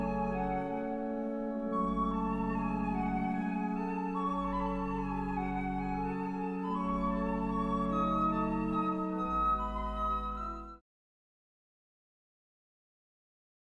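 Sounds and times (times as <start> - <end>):
transverse flute melody: 0.0 - 10.8.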